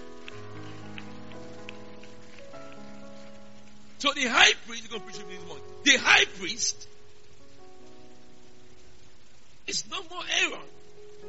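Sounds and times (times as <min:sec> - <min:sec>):
audience clapping: 0:00.0 - 0:04.4
speech: 0:04.0 - 0:06.9, 0:09.7 - 0:10.8.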